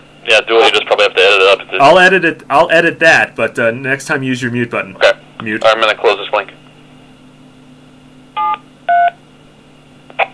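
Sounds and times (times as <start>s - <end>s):
low steady hum and hiss: 0.0s - 10.3s
speech: 0.4s - 6.6s
DTMF keypad tones keyed on ham radio repeater: 8.4s - 9.2s.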